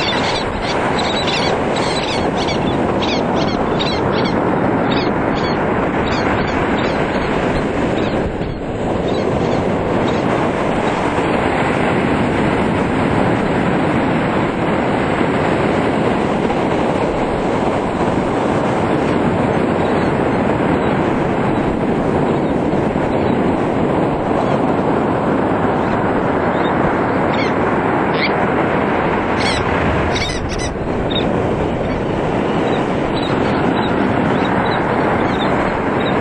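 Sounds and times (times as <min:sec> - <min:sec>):
ocean surf: 0:00.0 - 0:36.2.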